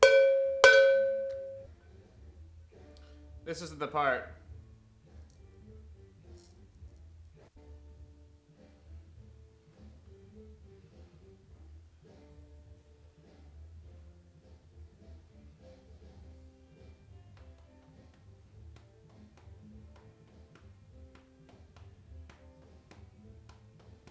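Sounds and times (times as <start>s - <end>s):
cowbell: 0.0s - 1.7s.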